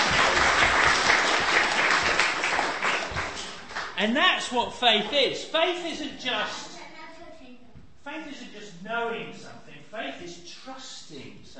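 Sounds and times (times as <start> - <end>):
audience applause: 0.0 - 4.0
speech: 4.0 - 6.7, 8.0 - 11.5.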